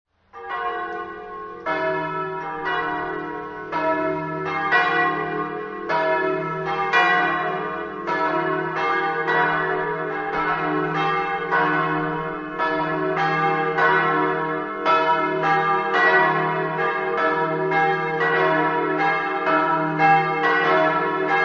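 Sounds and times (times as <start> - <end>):
bells ringing: 0.4 - 21.4.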